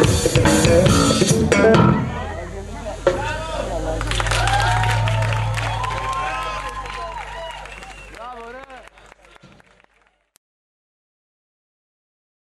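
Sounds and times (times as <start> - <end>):
drum: 0.0 - 2.1, 3.0 - 7.6
bass: 0.0 - 10.1.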